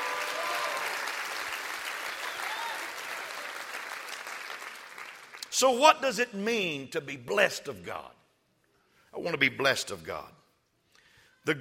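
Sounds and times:
audience clapping: 0.0 - 5.6
speech: 5.6 - 8.2, 9.2 - 10.4, 11.4 - 11.6.

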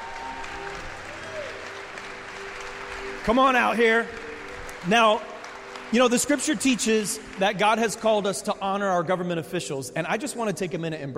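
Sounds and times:
audience applause welcoming the mayor of New Haven: 0.0 - 8.6
speech: 3.2 - 4.2, 4.8 - 5.3, 5.9 - 11.1.

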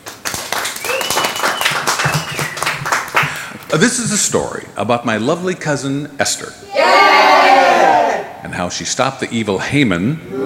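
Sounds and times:
audience applause at Club Emmaus: 0.0 - 4.1
speech: 3.7 - 10.4.

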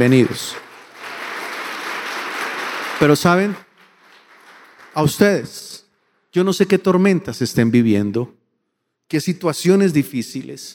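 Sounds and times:
speech: 0.0 - 0.6, 3.0 - 3.6, 5.0 - 5.7, 6.3 - 8.4, 9.1 - 10.7
audience applause: 0.0 - 5.3.

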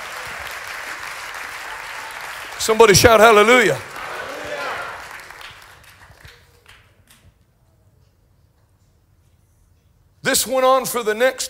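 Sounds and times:
audience hand clapping: 0.0 - 7.3
speech: 2.6 - 3.9, 10.3 - 11.4.

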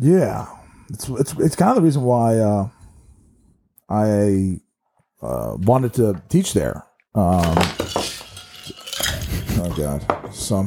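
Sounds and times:
speech: 0.0 - 2.8, 3.9 - 4.6, 5.2 - 8.0, 9.6 - 10.6
glass of lemonade knocked over: 7.3 - 10.2.

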